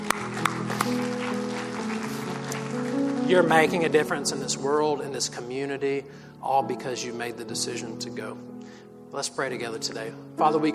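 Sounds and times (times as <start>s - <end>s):
audience applause: 0.0s - 3.3s
speech: 3.3s - 10.7s.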